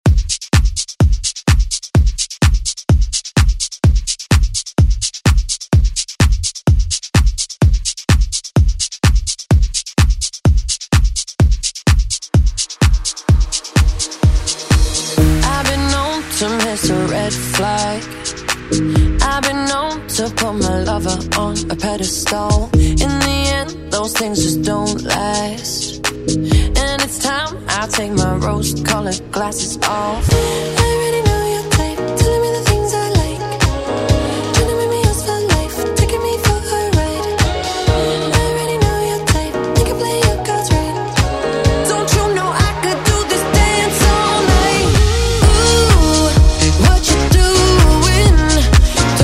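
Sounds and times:
pop drum loop: 0:00.0 - 0:49.2.

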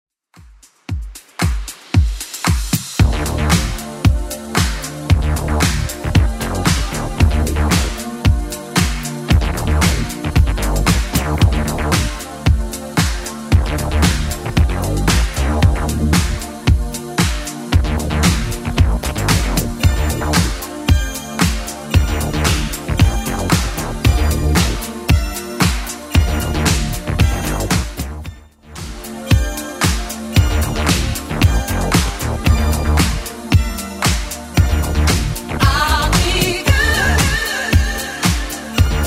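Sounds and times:
80s club edit music at 114 bpm: 0:00.4 - 0:39.0.

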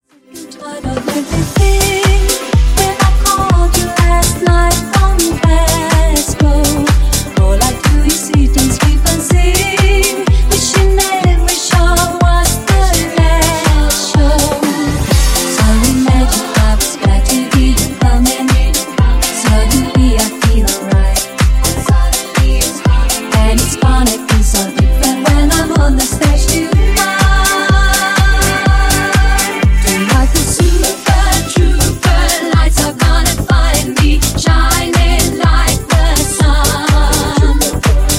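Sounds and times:
disco funk music at 124 bpm: 0:00.3 - 0:38.1.

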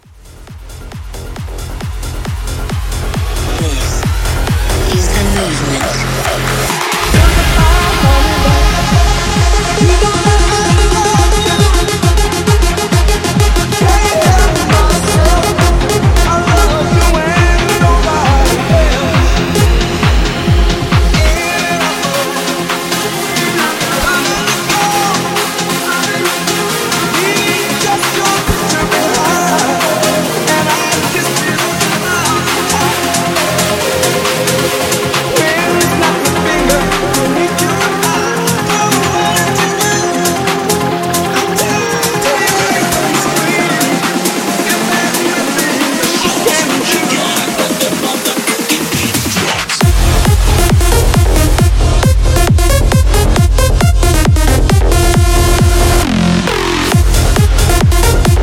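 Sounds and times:
big room music: 0:00.0 - 0:58.4.

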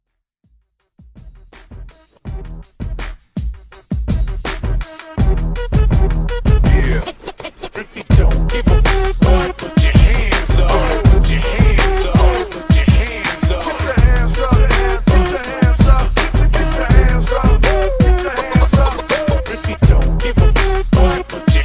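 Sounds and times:
retro drum beat: 0:01.0 - 0:07.0, 0:08.1 - 0:21.6
laughter: 0:17.7 - 0:19.8.

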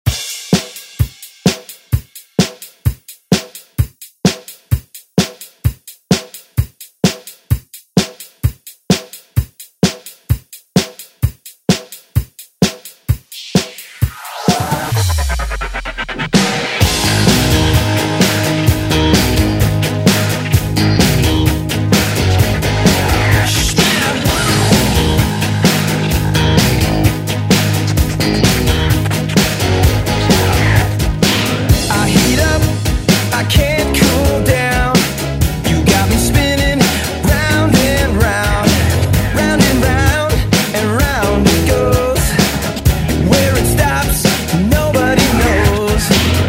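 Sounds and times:
90s drum beat: 0:00.0 - 0:46.4.

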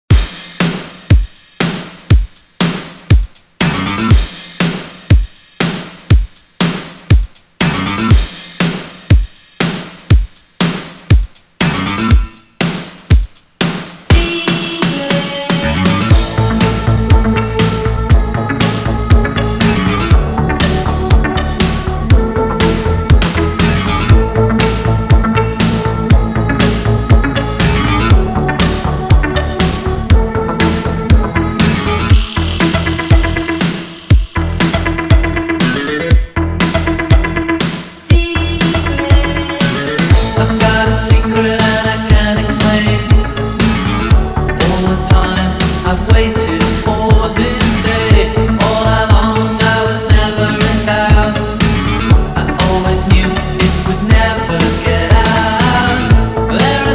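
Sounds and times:
Redrum drum machine beat at 120 BPM: 0:00.0 - 0:56.9.

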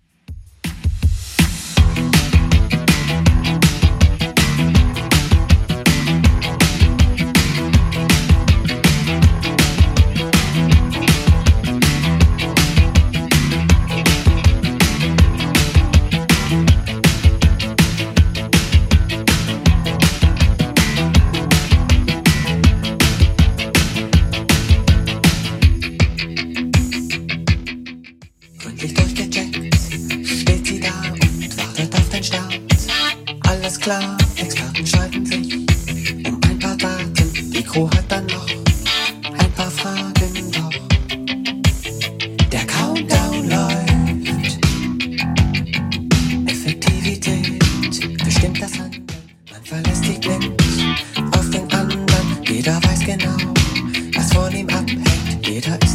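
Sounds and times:
80s club mix music: 0:00.6 - 0:27.8, 0:28.5 - 0:55.9.

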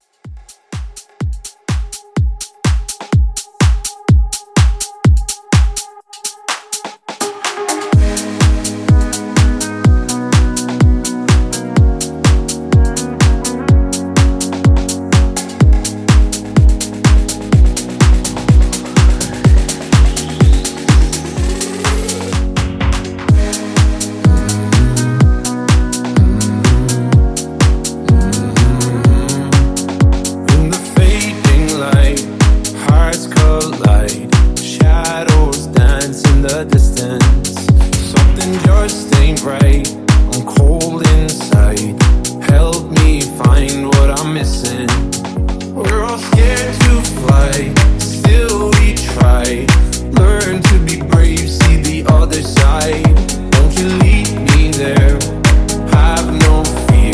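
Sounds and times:
future house mashup: 0:00.0 - 0:57.1.

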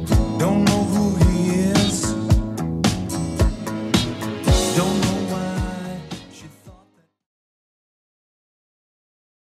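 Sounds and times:
1970s-style drum loop: 0:00.0 - 0:06.8.

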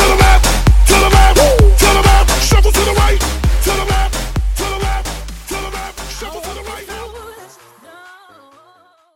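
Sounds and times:
funk bootleg music at 130 bpm: 0:00.0 - 0:07.1.

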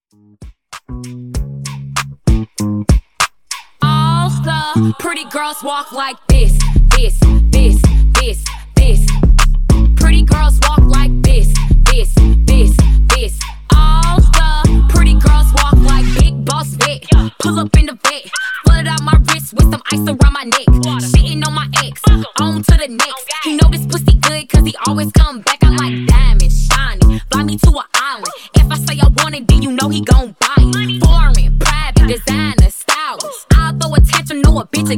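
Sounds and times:
music mashup: 0:00.1 - 0:34.9.

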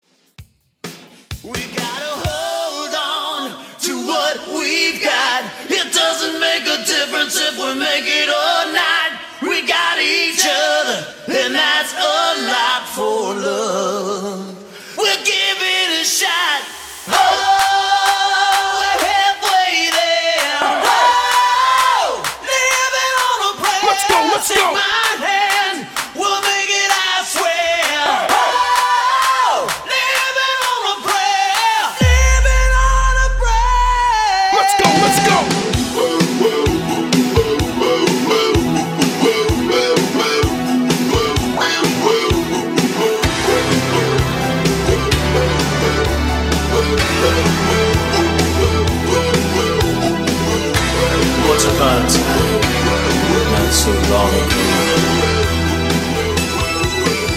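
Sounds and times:
a cappella hype vocals for a party mixshow: 0:01.4 - 0:57.3.

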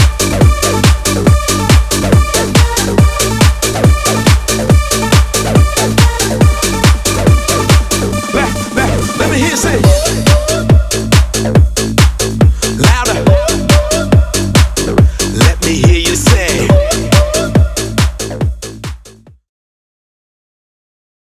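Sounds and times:
drum: 0:00.0 - 0:19.3.

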